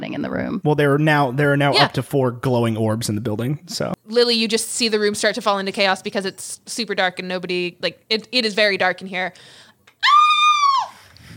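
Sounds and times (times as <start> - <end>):
speech: 0.0 - 9.6
person imitating a loud high-pitched scream: 10.0 - 11.0.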